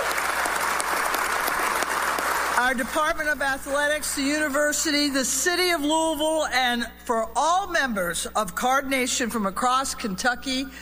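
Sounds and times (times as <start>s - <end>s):
audience applause at a university athletics event: 0.0s - 2.8s
speech: 2.6s - 10.7s.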